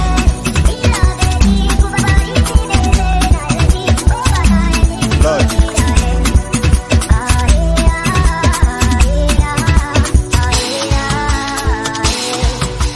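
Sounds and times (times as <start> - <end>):
chant of praise over a beat: 0.0 - 12.9.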